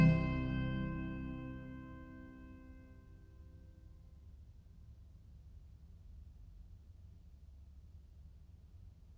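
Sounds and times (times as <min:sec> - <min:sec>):
organ duet: 0:00.0 - 0:02.4.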